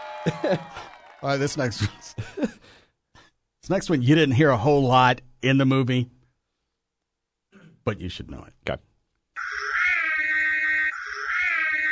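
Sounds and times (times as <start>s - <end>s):
laughter: 0.2s - 0.9s, 1.6s - 2.6s
speech: 0.2s - 2.8s, 3.7s - 6.2s, 7.9s - 8.9s
Ecto-1 car siren wailing: 9.4s - 11.9s.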